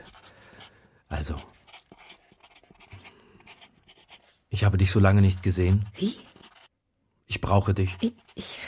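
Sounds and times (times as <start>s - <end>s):
pen writing on a sheet of paper: 0.0s - 0.6s, 1.2s - 4.4s, 5.1s - 6.7s, 7.8s - 8.5s
speech: 4.6s - 6.3s, 7.5s - 8.5s.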